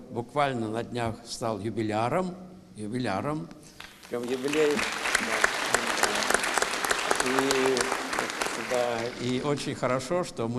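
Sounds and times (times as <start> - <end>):
speech: 0.1 - 5.0, 7.2 - 7.7, 8.7 - 10.5
audience applause: 3.8 - 9.6.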